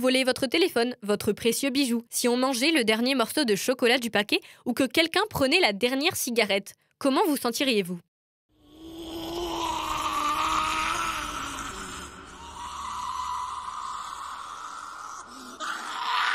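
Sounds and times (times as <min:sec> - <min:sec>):
speech: 0:00.0 - 0:08.1
creature's anguished cries: 0:08.6 - 0:16.3.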